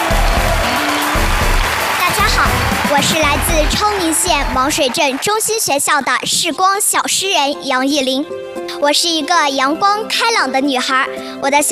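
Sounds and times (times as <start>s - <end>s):
audience applause welcoming young poets: 0.0s - 5.9s
speech: 2.9s - 11.7s.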